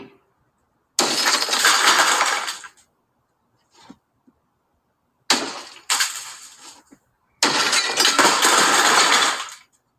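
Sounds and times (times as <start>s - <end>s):
glass window breaking from hammer: 1.0s - 2.8s, 5.3s - 6.7s, 7.4s - 9.7s.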